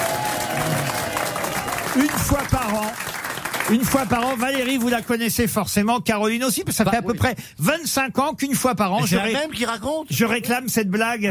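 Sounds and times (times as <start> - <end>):
studio audience on a French television talk show applauding and cheering: 0.0 - 5.3
speech: 2.0 - 11.3.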